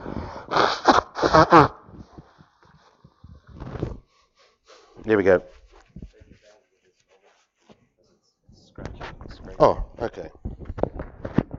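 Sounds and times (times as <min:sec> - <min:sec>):
loud honking nose blows: 0:00.0 - 0:05.0
speech: 0:00.5 - 0:01.8, 0:05.1 - 0:05.6, 0:09.6 - 0:10.4
quiet shuffling: 0:02.0 - 0:11.4.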